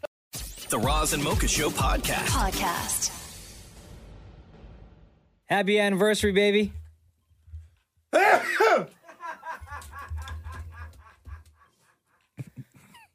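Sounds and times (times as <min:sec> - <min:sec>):
speech: 0:00.7 - 0:03.2, 0:05.5 - 0:06.8
person sneezing: 0:08.2 - 0:09.0
laughter: 0:08.4 - 0:13.1.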